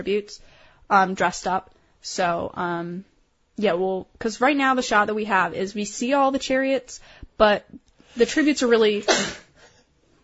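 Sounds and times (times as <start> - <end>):
speech: 0.0 - 9.4
person sneezing: 9.0 - 9.8.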